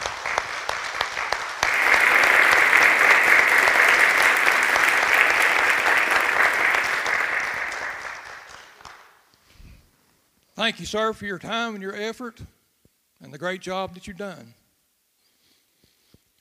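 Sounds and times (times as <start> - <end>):
audience applause: 0.0 - 9.2
speech: 10.6 - 12.6, 13.3 - 14.6.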